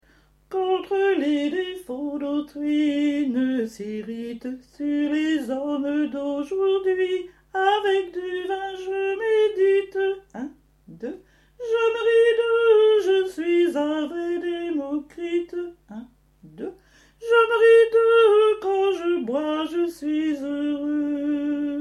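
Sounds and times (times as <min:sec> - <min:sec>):
alto voices singing: 0:00.5 - 0:21.7.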